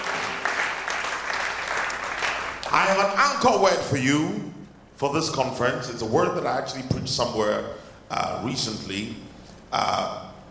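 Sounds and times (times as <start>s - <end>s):
crowd clapping: 0.0s - 3.2s
speech: 2.7s - 10.2s.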